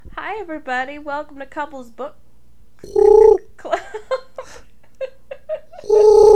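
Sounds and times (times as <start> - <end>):
speech: 0.2 - 2.2, 2.8 - 4.7
person imitating bird noises: 2.8 - 3.5, 5.8 - 6.3.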